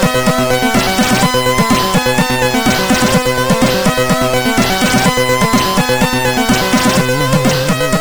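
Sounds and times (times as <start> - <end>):
trance music on MOS6581R4: 0.0 - 7.9.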